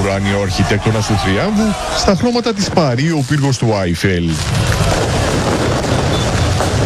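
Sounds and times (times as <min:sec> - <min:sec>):
speech: 0:00.2 - 0:04.8
fireworks bursting over a city celebration in Paris: 0:02.0 - 0:06.8.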